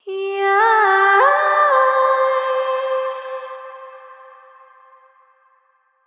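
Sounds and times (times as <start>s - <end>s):
vocal swell: 0.0s - 5.2s.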